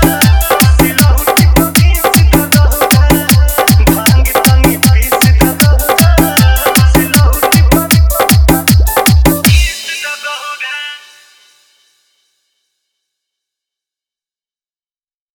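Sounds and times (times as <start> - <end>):
dance mix music: 0.0 - 11.6.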